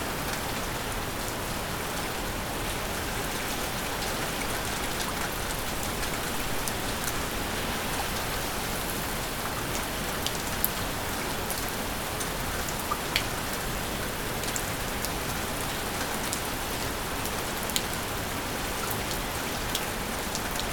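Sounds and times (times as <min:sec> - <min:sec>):
rainfall: 0:00.0 - 0:20.7.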